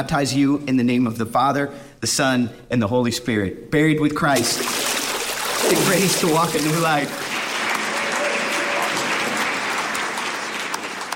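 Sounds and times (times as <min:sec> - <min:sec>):
speech: 0:00.0 - 0:05.0, 0:05.7 - 0:07.2
audience clapping: 0:04.7 - 0:11.1.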